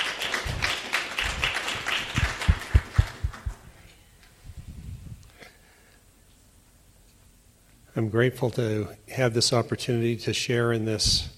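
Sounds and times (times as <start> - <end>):
audience applause: 0.0 - 3.7
speech: 8.0 - 11.3.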